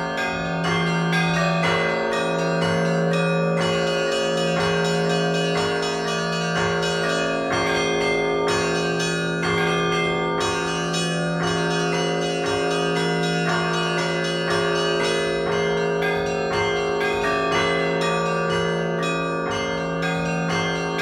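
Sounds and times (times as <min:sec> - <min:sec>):
church bell ringing of the Tatarstan Metropolis: 0:00.0 - 0:21.0.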